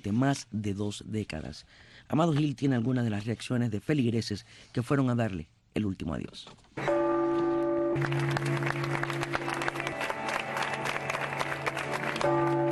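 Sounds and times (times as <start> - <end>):
speech: 0.0 - 6.9, 8.0 - 9.6
bells of the Cathedral of Havana ringing: 6.8 - 12.7
sustained applause: 8.0 - 12.7.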